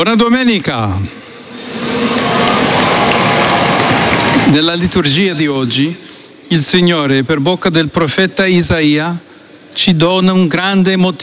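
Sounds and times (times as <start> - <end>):
speech: 0.0 - 1.2, 4.5 - 11.2
faint cheer: 1.3 - 5.3
large crowd applauding in an open public square: 1.3 - 5.5.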